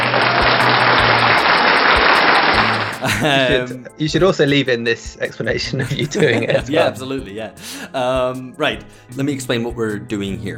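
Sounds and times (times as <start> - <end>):
random applause audio clip: 0.0 - 3.0
laughter: 2.9 - 4.0, 5.6 - 7.1
speech: 3.0 - 10.5.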